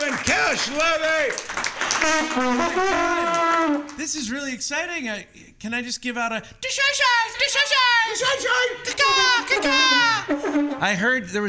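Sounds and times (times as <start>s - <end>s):
audience applause: 0.0s - 4.0s
speech: 0.5s - 11.4s
person cheering: 2.0s - 4.0s, 7.8s - 10.4s.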